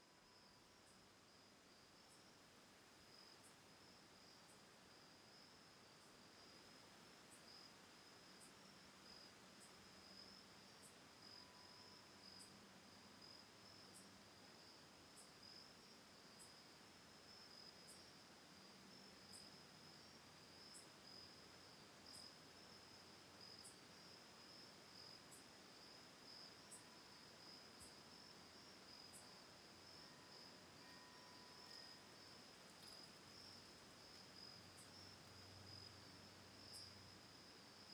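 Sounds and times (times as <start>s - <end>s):
soft background hiss: 0.0s - 37.9s
crickets trilling: 13.2s - 37.9s
faint ringing bell tone: 30.0s - 32.3s.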